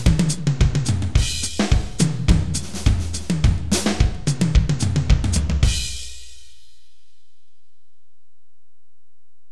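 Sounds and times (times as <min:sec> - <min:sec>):
drums: 0:00.0 - 0:06.7.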